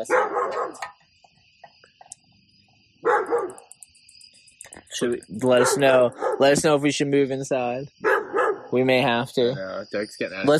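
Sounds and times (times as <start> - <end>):
dog barking in a backyard at night: 0.0 - 0.8, 3.0 - 3.7, 5.5 - 6.6, 8.0 - 8.8
speech: 0.0 - 1.0, 5.0 - 8.1, 8.7 - 10.5
high insect chirping in a backyard at night: 0.0 - 10.5.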